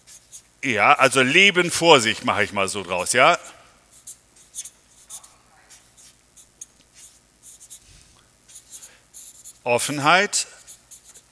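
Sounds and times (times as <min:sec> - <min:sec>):
pen writing on paper while taking notes: 0:00.0 - 0:00.5, 0:03.9 - 0:07.8, 0:08.5 - 0:09.6, 0:10.6 - 0:11.3
speech: 0:00.6 - 0:03.6, 0:09.7 - 0:10.6.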